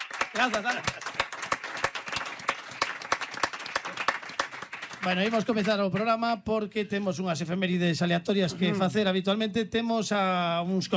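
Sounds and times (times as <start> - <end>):
audience applause: 0.0 - 6.0
speech: 0.4 - 1.2, 5.0 - 10.9.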